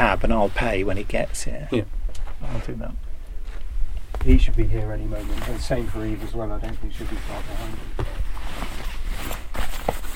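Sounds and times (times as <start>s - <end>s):
steady low rumble: 0.0s - 7.4s
speech: 0.1s - 3.0s, 4.2s - 10.0s
rustling in a pocket: 7.0s - 10.1s.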